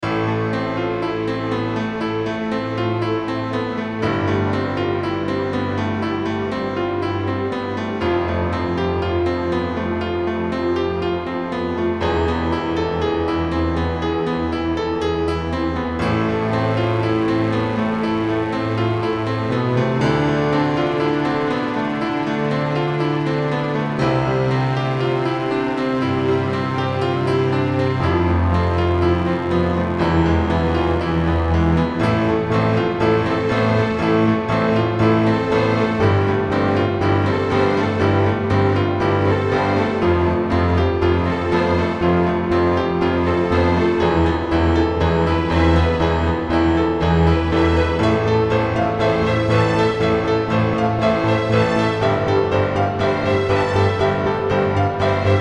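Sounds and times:
apocalyptic keyboard music: 0:00.0 - 0:55.3.

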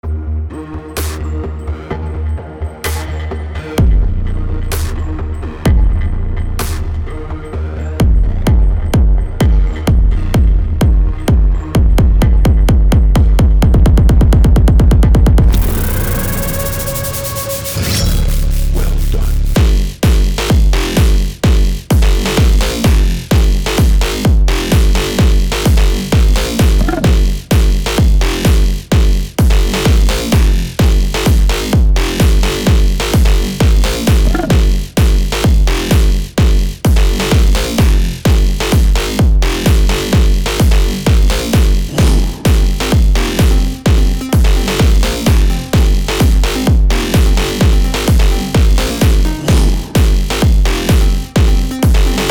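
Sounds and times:
dark hard house music: 0:00.0 - 0:52.2.

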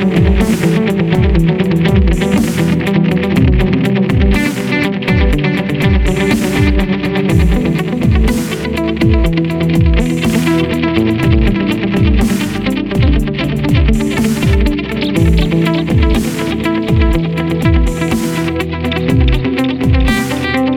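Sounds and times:
chillstep music with guitar: 0:00.0 - 0:20.7.

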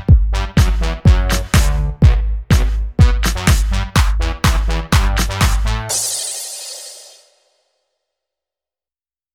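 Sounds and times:
song: 0:00.3 - 0:07.4.

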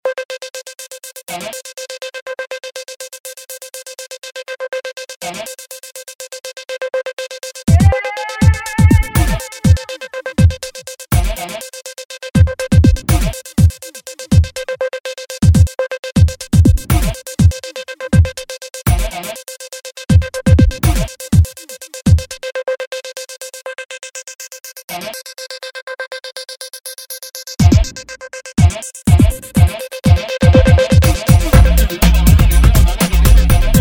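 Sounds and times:
electronica music: 0:04.2 - 0:23.0, 0:27.6 - 0:33.8.

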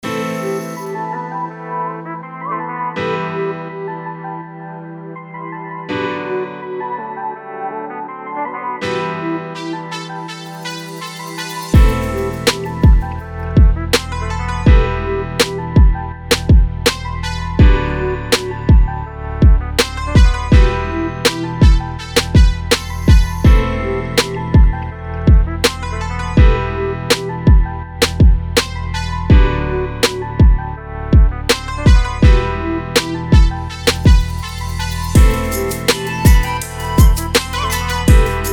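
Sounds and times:
music beat: 0:09.6 - 0:30.6, 0:31.2 - 0:38.5.

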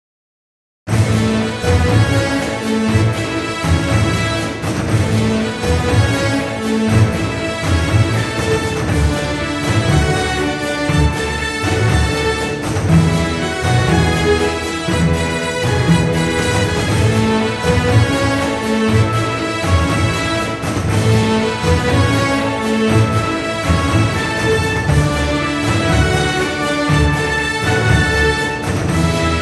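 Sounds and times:
brave parade background music: 0:00.9 - 0:29.4.

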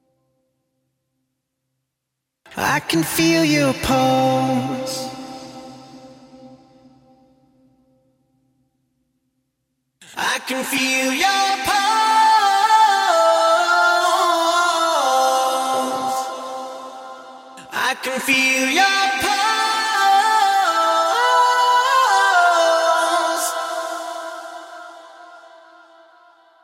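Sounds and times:
person singing a cappella in a studio: 0:02.5 - 0:06.9, 0:10.0 - 0:26.6.

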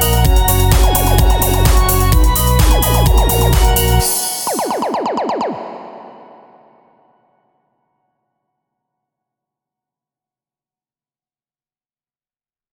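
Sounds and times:
retro club music: 0:00.0 - 0:06.8.

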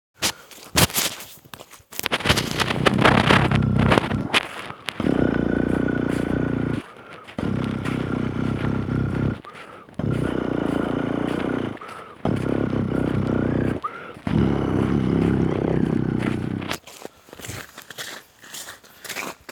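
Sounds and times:
low bass loop: 0:02.3 - 0:04.4, 0:05.0 - 0:09.4, 0:10.0 - 0:16.7.

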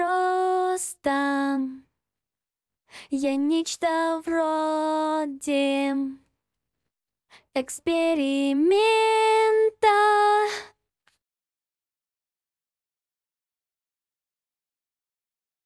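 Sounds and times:
a cappella singing: 0:00.0 - 0:01.9, 0:03.1 - 0:06.3, 0:07.5 - 0:10.7.

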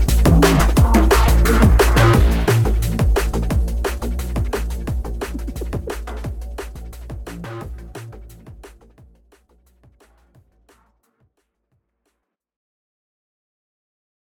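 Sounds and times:
drum and bass mix: 0:00.0 - 0:11.0.

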